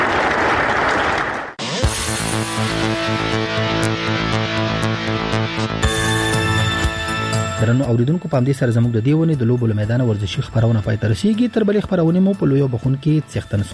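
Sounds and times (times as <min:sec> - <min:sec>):
applause for youth and children's sports performances: 0:00.0 - 0:01.6
instrumental music with sustained tones: 0:01.6 - 0:13.7
speech: 0:07.7 - 0:13.7.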